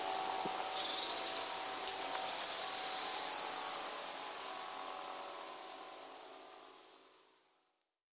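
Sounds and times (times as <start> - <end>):
Eurasian blue tit song: 0.0 - 4.7, 5.4 - 6.9.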